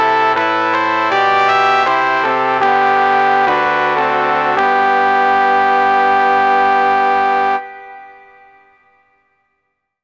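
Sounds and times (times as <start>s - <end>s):
brass quartet playing a national anthem: 0.4s - 7.6s.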